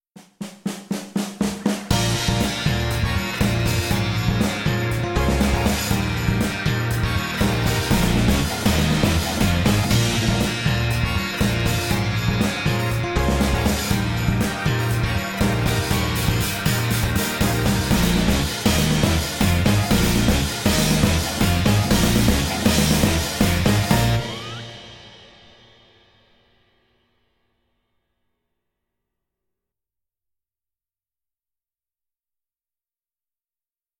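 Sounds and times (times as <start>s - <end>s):
backing track: 1.2s - 26.0s.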